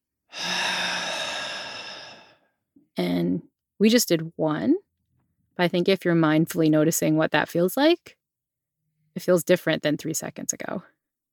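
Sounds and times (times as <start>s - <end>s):
deep slow breath in a relaxing breathing exercise: 0.3s - 2.5s
speech: 3.0s - 4.8s, 5.6s - 8.2s, 9.2s - 11.0s.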